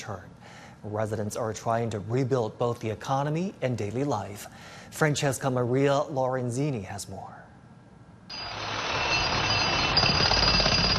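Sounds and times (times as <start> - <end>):
speech: 0.0 - 7.4
drill in Aleppo's old market: 8.3 - 10.9.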